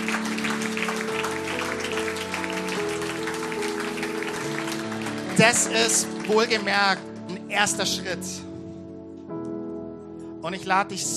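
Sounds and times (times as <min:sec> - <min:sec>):
audience applause: 0:00.0 - 0:07.1
speech: 0:05.4 - 0:08.5, 0:10.5 - 0:11.1.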